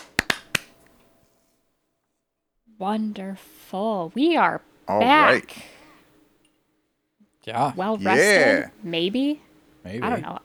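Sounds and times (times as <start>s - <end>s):
sharp hand claps for audio sync: 0.0s - 1.0s
speech: 2.8s - 5.8s, 7.4s - 10.4s
laughter: 4.9s - 5.6s, 7.6s - 8.7s, 9.9s - 10.3s.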